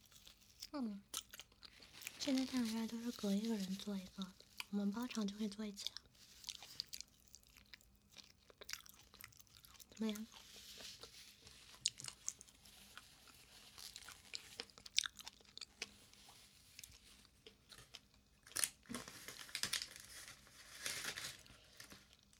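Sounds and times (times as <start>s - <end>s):
person chewing chicken nuggets and a chicken drumstick: 0.0s - 2.7s, 4.2s - 18.7s
speech: 0.7s - 1.2s, 2.2s - 6.0s, 10.0s - 10.4s.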